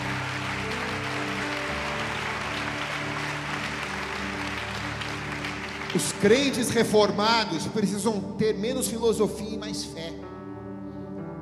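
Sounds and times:
audience applauding: 0.0s - 7.2s
sustained keyboard chords: 0.0s - 11.4s
speech: 6.0s - 10.3s.

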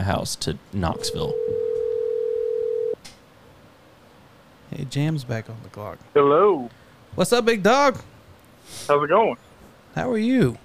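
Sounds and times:
speech: 0.0s - 1.5s, 4.7s - 8.1s, 8.7s - 10.6s
phone line ringback tone while a call goes through: 0.9s - 3.0s.

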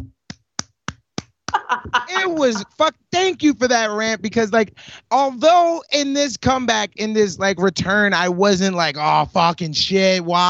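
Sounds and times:
single person clapping hands: 0.0s - 2.8s
laughter: 1.5s - 5.4s
speech: 2.2s - 10.4s.

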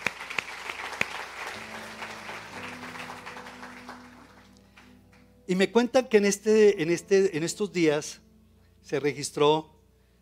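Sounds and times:
audience applause: 0.0s - 4.9s
speech: 5.5s - 8.2s, 8.9s - 9.8s.

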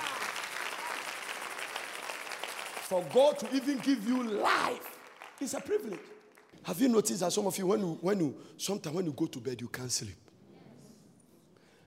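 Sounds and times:
audience clapping: 0.0s - 7.1s
speech: 2.9s - 10.2s.

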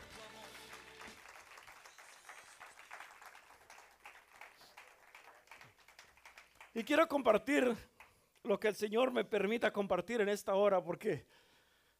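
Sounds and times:
audience applause: 0.0s - 6.8s
speech: 6.8s - 11.4s.

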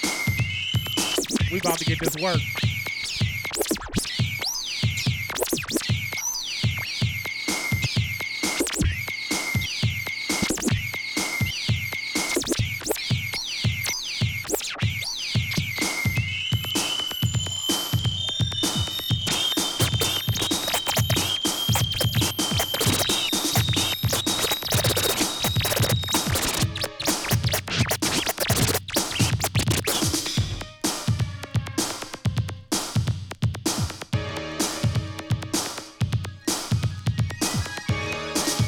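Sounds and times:
pounding beat: 0.0s - 14.7s, 15.3s - 38.6s
DJ record scratching: 0.2s - 9.7s, 10.3s - 11.5s, 13.9s - 17.1s, 18.6s - 30.5s
speech: 1.5s - 2.7s.

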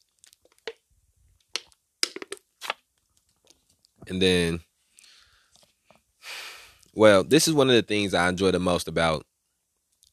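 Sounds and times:
bottle being gripped and handled: 1.6s - 2.8s
speech: 4.1s - 4.7s, 7.0s - 9.3s.

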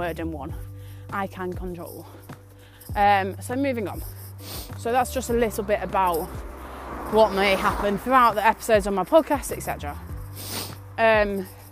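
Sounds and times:
speech: 0.0s - 2.3s, 2.9s - 11.6s
sniffling nose on a walk in fresh air: 4.0s - 4.8s, 10.2s - 11.7s.

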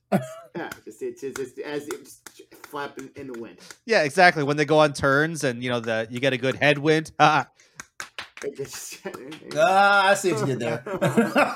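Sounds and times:
speech: 0.1s - 7.7s, 8.4s - 11.5s
hands clapping: 0.6s - 4.2s, 5.0s - 6.9s, 7.8s - 10.7s
laughter: 8.5s - 11.5s.

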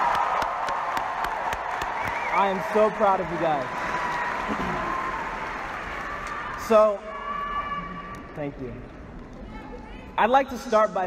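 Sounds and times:
audience applause: 0.0s - 6.6s
speech: 2.4s - 3.8s, 4.5s - 4.9s, 6.7s - 7.1s, 8.4s - 8.9s, 10.2s - 11.0s.

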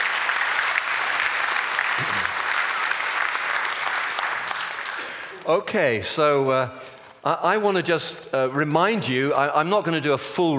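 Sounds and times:
audience clapping: 0.0s - 5.4s
speech: 2.0s - 2.3s, 5.5s - 10.5s.

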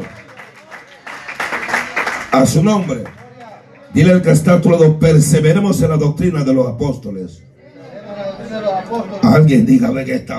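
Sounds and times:
audience clapping: 0.0s - 3.9s
speech: 2.3s - 3.2s, 3.9s - 7.5s, 8.5s - 10.3s.

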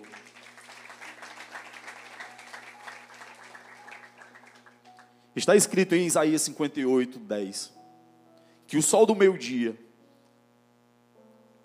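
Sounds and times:
audience applause: 0.0s - 5.2s
speech: 5.4s - 7.8s, 8.7s - 9.8s.

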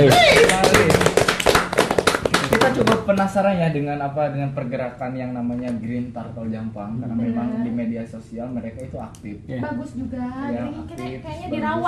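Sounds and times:
hand clapping from a few people: 0.0s - 3.4s
speech: 3.3s - 11.8s.

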